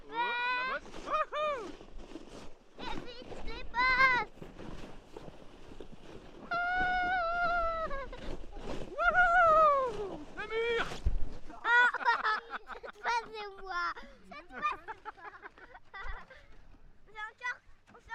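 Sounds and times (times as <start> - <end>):
luge sliding: 0.1 - 14.0
laughter: 11.5 - 16.4.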